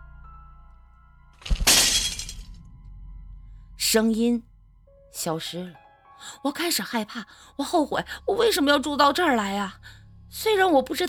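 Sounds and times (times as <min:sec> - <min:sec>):
mirror glass shattering in a toilet: 0:01.4 - 0:02.6
speech: 0:03.9 - 0:04.5, 0:05.1 - 0:11.0.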